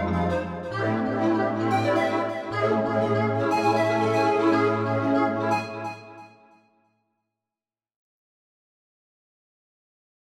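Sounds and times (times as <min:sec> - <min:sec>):
world instruments playing: 0:00.0 - 0:06.2.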